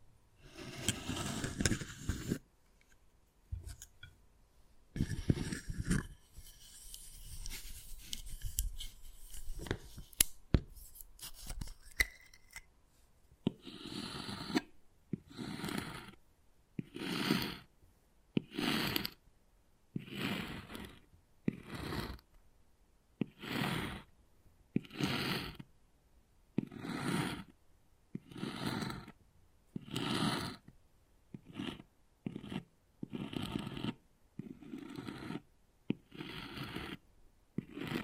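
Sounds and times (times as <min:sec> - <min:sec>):
wood carving scraping: 0:00.4 - 0:02.4, 0:05.0 - 0:12.6, 0:13.5 - 0:14.7, 0:15.3 - 0:16.2, 0:16.8 - 0:17.7, 0:18.4 - 0:19.2, 0:20.0 - 0:22.2, 0:23.2 - 0:24.1, 0:24.8 - 0:25.6, 0:26.6 - 0:27.5, 0:28.2 - 0:29.2, 0:29.8 - 0:30.7, 0:31.4 - 0:37.0, 0:37.6 - 0:38.0.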